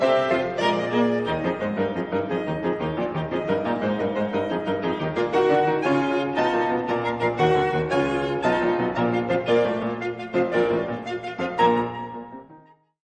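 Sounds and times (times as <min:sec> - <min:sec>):
piano trio playing: 0:00.0 - 0:12.9.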